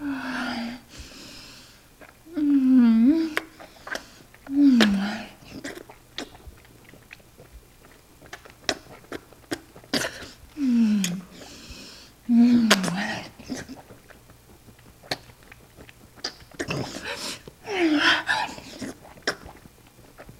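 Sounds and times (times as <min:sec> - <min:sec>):
sex sucking sounds: 0:00.0 - 0:06.0, 0:08.7 - 0:20.3.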